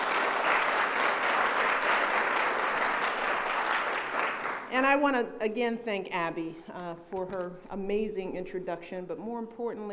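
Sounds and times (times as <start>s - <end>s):
crowd applauding: 0.0s - 4.7s
speech: 4.7s - 9.9s.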